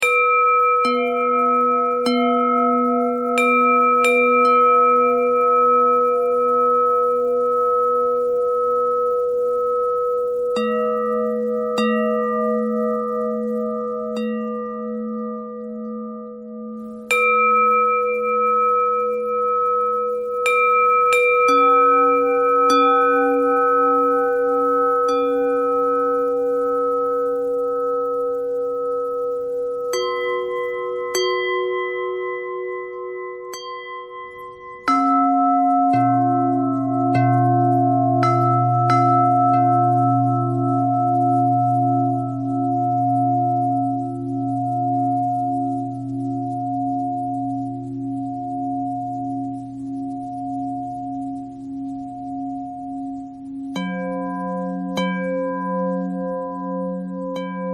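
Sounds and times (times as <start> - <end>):
pentatonic bell melody: 0.0 - 57.7.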